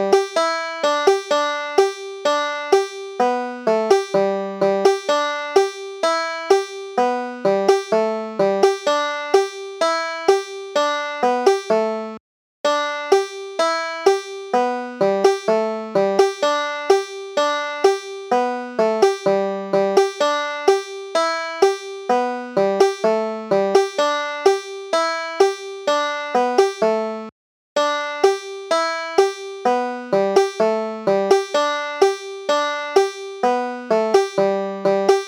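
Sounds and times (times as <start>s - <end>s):
banjo playing folk tune: 0.0s - 35.2s.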